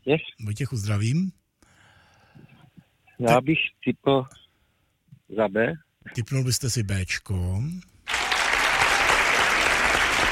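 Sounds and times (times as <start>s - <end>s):
speech: 0.1s - 1.4s, 3.2s - 4.4s, 5.3s - 7.9s
applause: 8.1s - 10.3s.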